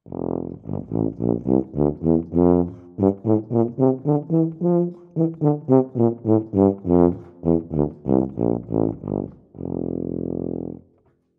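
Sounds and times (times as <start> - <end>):
tuba: 0.0 - 11.1.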